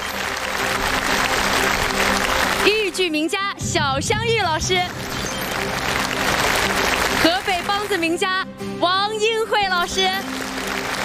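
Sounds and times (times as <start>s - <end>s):
audience applause at a traditional Chinese opera show: 0.0s - 3.0s, 4.8s - 8.0s, 9.9s - 11.0s
speech: 3.0s - 6.0s, 7.2s - 10.4s.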